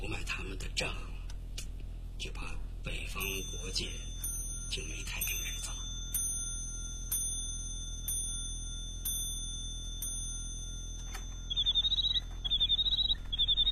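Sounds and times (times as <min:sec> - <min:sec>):
faint steady hum: 0:00.0 - 0:13.7
speech: 0:00.4 - 0:01.2, 0:02.2 - 0:04.1, 0:04.7 - 0:05.8
mechanical bird-song clock chiming: 0:03.2 - 0:13.7
mechanical bird-song clock warbling chirps: 0:03.2 - 0:13.7.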